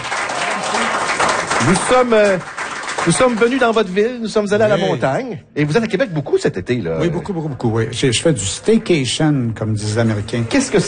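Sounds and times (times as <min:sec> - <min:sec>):
talk show audience applause greeting Robert Lepage: 0:00.0 - 0:04.0
speech: 0:01.6 - 0:10.8.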